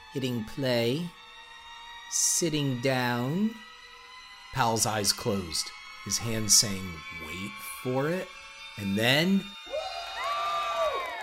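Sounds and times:
speech: 0.1s - 1.2s, 2.1s - 3.7s, 4.5s - 9.7s
class applauding: 9.7s - 11.2s
class screaming and applauding: 9.7s - 11.2s.

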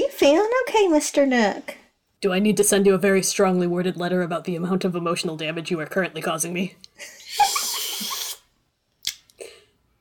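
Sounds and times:
speech: 0.2s - 7.5s
slurping coffee: 7.4s - 8.4s.

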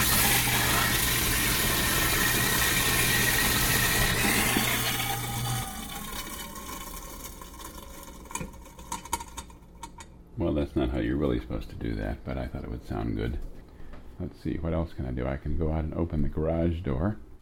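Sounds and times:
garbage disposal running: 0.0s - 12.2s
speech: 11.0s - 13.6s, 14.2s - 17.2s.

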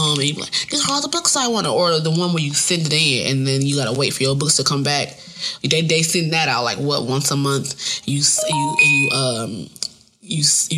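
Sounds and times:
speech: 0.2s - 10.7s
phone text message notification beeps: 8.4s - 9.4s.

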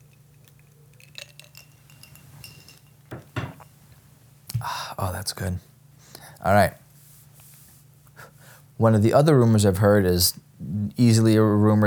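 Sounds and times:
someone sipping a cocktail from a glass: 0.0s - 3.7s
light glassy clinks: 1.0s - 3.7s
louder knocks: 3.1s - 3.6s
speech: 4.6s - 5.7s, 6.4s - 6.8s, 8.8s - 11.8s.

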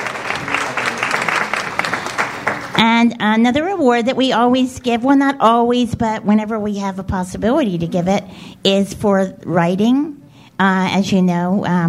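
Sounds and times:
audience applause: 0.0s - 2.8s
speech: 2.8s - 11.8s.

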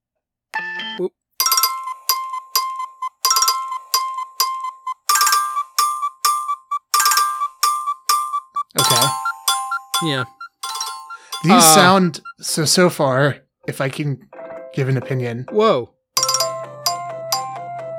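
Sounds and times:
speech: 1.0s - 1.2s, 10.0s - 10.4s, 11.4s - 16.0s
chirping alarm ringtone: 1.4s - 12.5s, 16.2s - 17.9s.

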